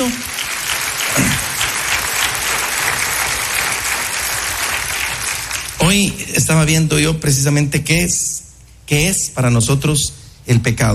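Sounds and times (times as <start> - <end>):
speech: 0.0 - 0.3, 5.8 - 10.9
audience clapping: 0.0 - 6.5.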